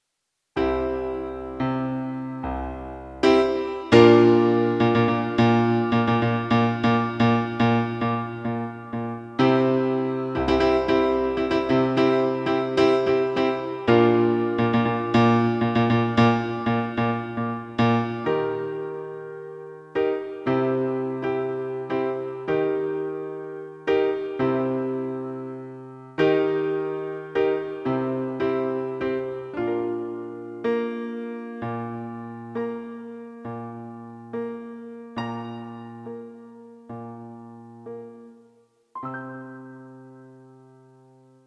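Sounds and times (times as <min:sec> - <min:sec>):
piano: 0:00.0 - 0:41.4.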